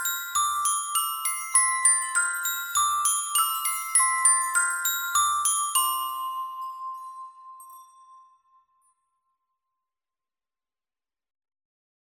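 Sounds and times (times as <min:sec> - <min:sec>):
Christmas bell tune: 0:00.0 - 0:08.7.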